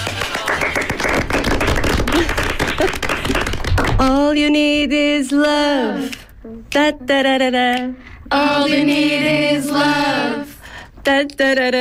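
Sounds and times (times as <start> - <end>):
applause for the cast of a musical: 0.0 - 4.1
speech: 4.0 - 6.2, 6.8 - 11.7.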